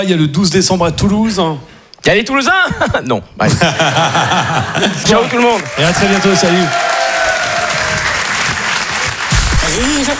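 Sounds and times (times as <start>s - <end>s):
speech: 0.0s - 6.9s, 9.8s - 10.1s
laughter: 2.8s - 6.7s
audience applause at a comedy and song stage show: 4.2s - 10.1s.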